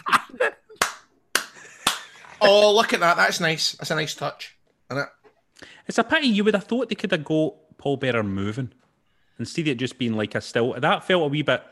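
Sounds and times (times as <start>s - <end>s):
weak handclap: 0.8s - 2.3s
speech: 2.4s - 5.2s, 5.9s - 8.8s, 9.4s - 11.7s.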